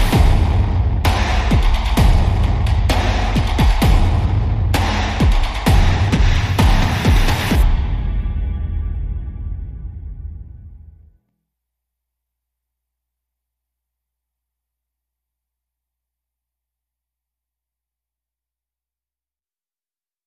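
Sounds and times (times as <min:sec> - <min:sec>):
percussion and effects: 0:00.0 - 0:10.8.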